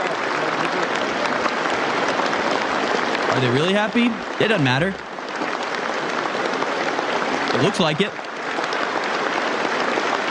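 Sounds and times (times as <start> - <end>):
crowd clapping: 0.0 - 10.2
speech: 3.4 - 5.1, 7.6 - 8.2.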